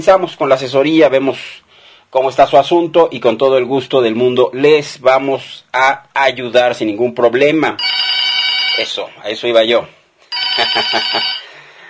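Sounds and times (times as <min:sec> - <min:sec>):
speech: 0:00.0 - 0:08.0, 0:08.8 - 0:10.0, 0:10.8 - 0:11.4
telephone ringing in the studio: 0:07.8 - 0:09.0, 0:10.3 - 0:11.6.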